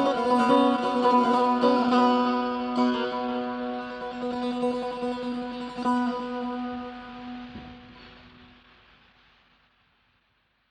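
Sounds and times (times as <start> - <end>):
improvisation in the Mahoor mode: 0.0 - 8.1.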